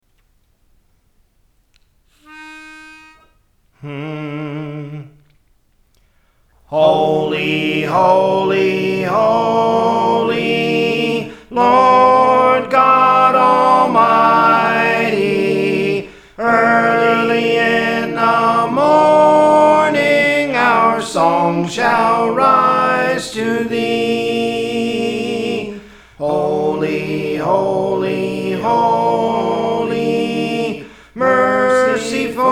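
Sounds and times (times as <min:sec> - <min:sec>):
soprano singing: 0:06.7 - 0:32.4.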